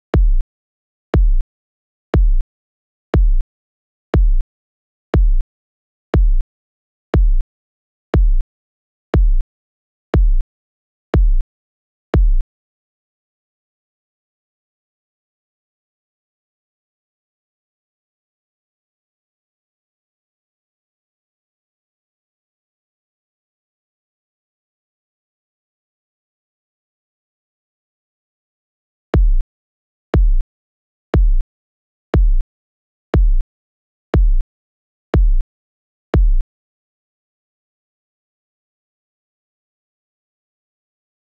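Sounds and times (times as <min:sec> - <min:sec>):
bass drum: 0:00.0 - 0:00.4, 0:01.2 - 0:01.4, 0:02.2 - 0:02.4, 0:03.2 - 0:03.4, 0:04.2 - 0:04.4, 0:05.2 - 0:05.4, 0:06.2 - 0:06.4, 0:07.2 - 0:07.4, 0:08.2 - 0:08.4, 0:09.2 - 0:09.4, 0:10.2 - 0:10.4, 0:11.2 - 0:11.4, 0:29.2 - 0:29.4, 0:30.2 - 0:30.4, 0:31.2 - 0:31.4, 0:32.2 - 0:32.4, 0:33.2 - 0:33.4, 0:34.2 - 0:34.4, 0:35.2 - 0:35.4, 0:36.2 - 0:36.4.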